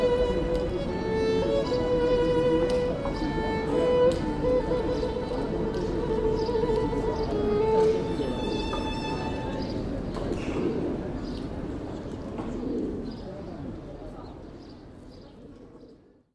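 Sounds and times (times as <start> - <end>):
person busking: 0.0 - 11.7.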